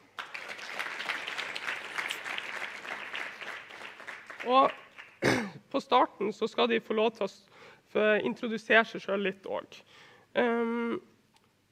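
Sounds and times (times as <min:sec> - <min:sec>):
applause: 0:00.0 - 0:05.4
speech: 0:04.4 - 0:11.1.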